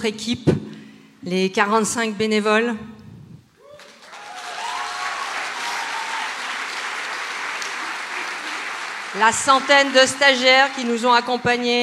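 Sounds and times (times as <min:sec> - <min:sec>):
speech: 0:00.0 - 0:03.0, 0:09.2 - 0:11.8
audience applause: 0:03.8 - 0:11.8.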